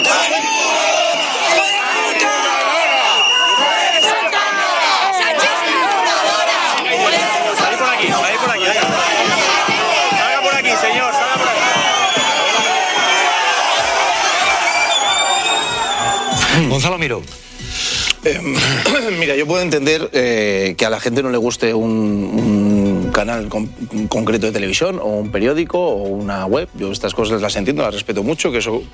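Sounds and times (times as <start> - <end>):
large protest crowd chanting and shouting: 0.0 - 16.4
speech: 16.8 - 17.4, 18.2 - 28.9.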